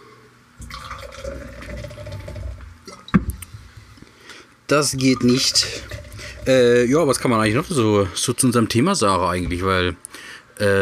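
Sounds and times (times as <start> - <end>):
water pouring into a glass or container: 0.6 - 2.7, 5.1 - 6.8
speech: 4.7 - 10.8.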